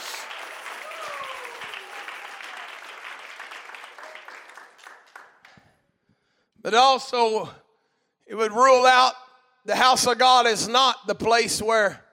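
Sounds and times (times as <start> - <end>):
audience clapping hands together: 0.0 - 5.9
speech: 6.6 - 7.6, 8.3 - 12.0.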